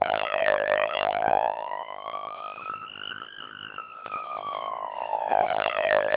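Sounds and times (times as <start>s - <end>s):
siren encoded with codec2: 0.0s - 6.1s.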